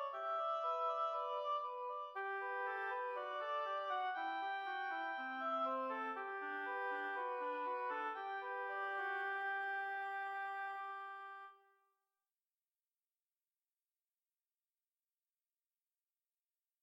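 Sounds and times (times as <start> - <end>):
two oboes playing a study: 0.0 - 11.6.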